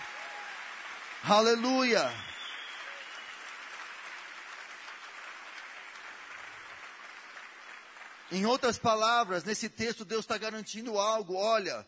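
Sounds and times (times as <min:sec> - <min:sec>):
audience applauding: 0:00.0 - 0:09.4
speech: 0:01.2 - 0:02.3, 0:08.3 - 0:11.8.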